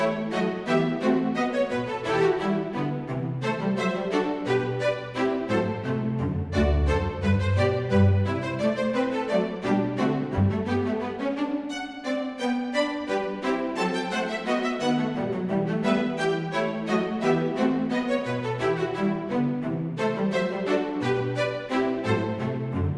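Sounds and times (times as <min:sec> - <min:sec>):
classical piece arranged for strings: 0:00.0 - 0:22.9.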